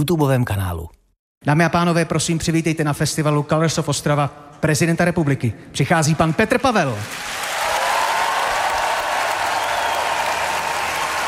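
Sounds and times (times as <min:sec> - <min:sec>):
speech: 0:00.0 - 0:07.5
large audience applause and standing ovation: 0:07.0 - 0:11.2.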